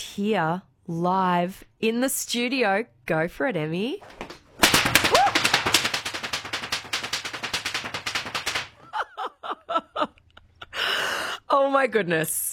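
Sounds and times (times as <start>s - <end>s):
speech: 0.0s - 4.2s, 11.6s - 12.5s
whip cracks: 4.6s - 8.8s
laughter: 8.8s - 10.7s.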